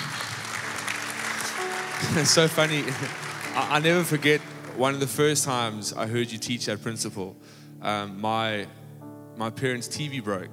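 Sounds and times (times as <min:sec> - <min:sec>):
audience applause: 0:00.0 - 0:05.5
speech: 0:02.0 - 0:08.8, 0:09.4 - 0:10.5.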